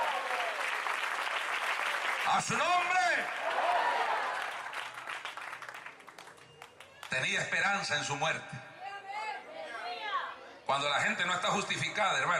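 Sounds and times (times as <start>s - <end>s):
audience applause: 0.0s - 7.2s
speech: 2.3s - 4.0s, 7.1s - 8.7s, 10.7s - 12.3s.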